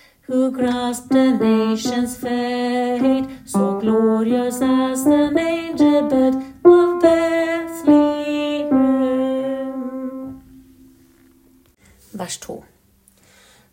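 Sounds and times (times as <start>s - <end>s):
tenor singing: 0.3s - 11.0s.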